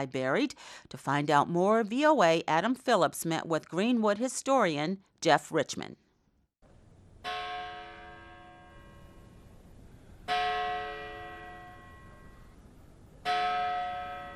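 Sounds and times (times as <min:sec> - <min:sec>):
speech: 0:00.0 - 0:06.0
bell atop Greenwood cemetery's carved Gothic entrance tolling: 0:07.2 - 0:14.3.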